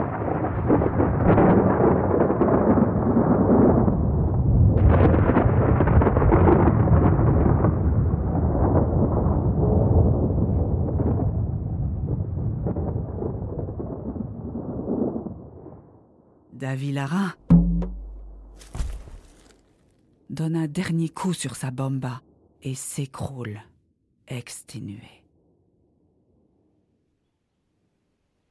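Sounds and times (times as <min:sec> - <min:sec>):
thunder and lightning sound effect: 0:00.0 - 0:16.2
speech: 0:16.7 - 0:17.4, 0:20.4 - 0:23.7, 0:24.3 - 0:25.2.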